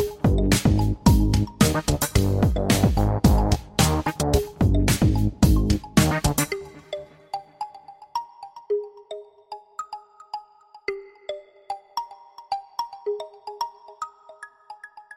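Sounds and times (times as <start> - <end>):
bass: 0.0 - 6.7.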